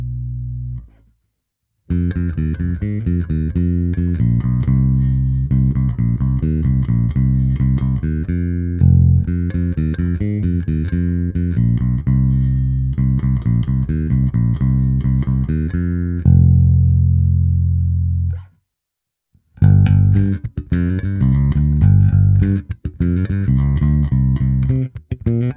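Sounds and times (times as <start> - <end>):
bass guitar through multi-effect amp simulation: 0.0 - 1.1, 1.9 - 18.5, 19.6 - 25.5.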